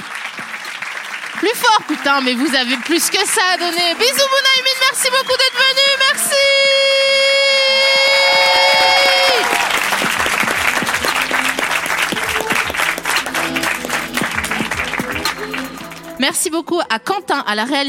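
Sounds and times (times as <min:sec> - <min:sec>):
thunderous audience applause: 0:00.0 - 0:05.2, 0:07.5 - 0:16.2
speech: 0:01.4 - 0:07.2, 0:16.2 - 0:17.8.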